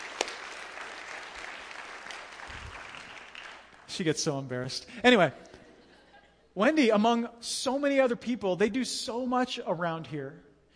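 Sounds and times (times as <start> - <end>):
audience clapping: 0.0 - 4.2
speech: 4.0 - 5.5, 6.6 - 10.5.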